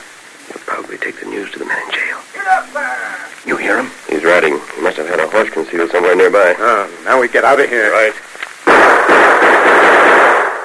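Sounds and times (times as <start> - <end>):
speech: 0.8 - 8.9
gunshots into a wooden barrel: 8.6 - 10.6.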